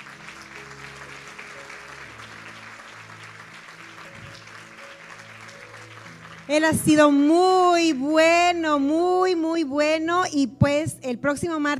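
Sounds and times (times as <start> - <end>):
audience applause: 0.0 - 6.7
speech: 6.5 - 11.7.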